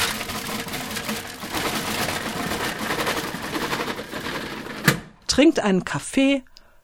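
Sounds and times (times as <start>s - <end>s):
shop's metal roller shutter rattling as it rolls open: 0.0s - 5.8s
speech: 5.4s - 6.5s.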